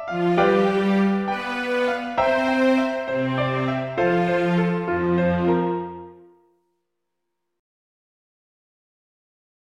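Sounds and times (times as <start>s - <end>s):
slow quad melody with viola and cello: 0.0s - 6.3s.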